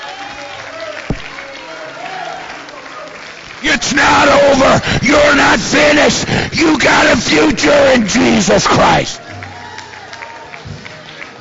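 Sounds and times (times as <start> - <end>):
audience clapping: 0.0 - 11.3
sharp thump: 1.1 - 1.3
speech: 3.9 - 9.2.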